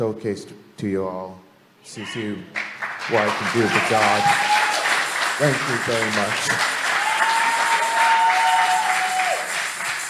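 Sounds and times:
speech: 0.0 - 4.6, 5.4 - 6.8
audience clapping: 2.5 - 10.0.

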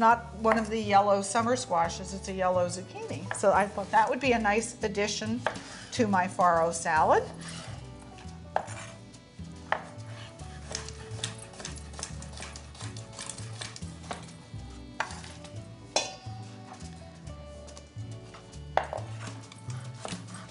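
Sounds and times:
speech: 0.0 - 7.6
low tonal background: 0.0 - 20.5
knife chopping a red bell pepper on a cutting board: 5.4 - 5.7, 8.5 - 9.0, 9.6 - 14.3, 18.8 - 20.5.

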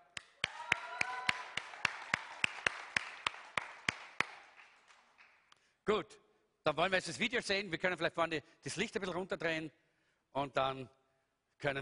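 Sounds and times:
rhythmic applause for the technician: 0.0 - 5.7
speech: 5.9 - 11.0, 11.6 - 11.7.

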